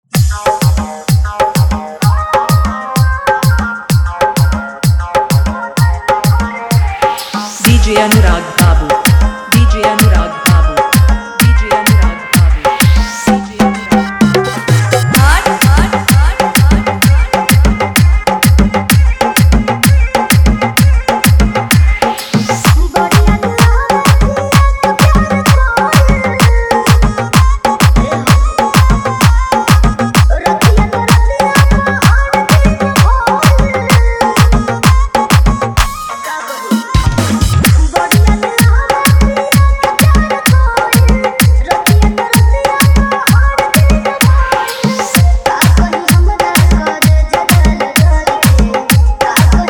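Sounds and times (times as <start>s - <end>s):
hard dholki bass mix: 0.0s - 49.6s.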